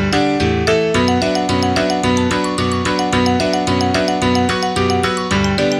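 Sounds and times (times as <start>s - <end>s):
operating system music: 0.2s - 5.7s.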